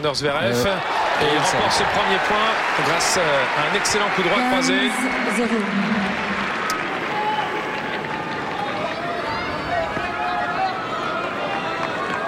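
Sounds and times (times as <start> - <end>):
speech: 0.0 - 6.3
scattered claps and calls of tennis crowd: 2.3 - 9.4, 11.0 - 12.2
noisy tennis crowd murmur during a match: 4.3 - 12.2.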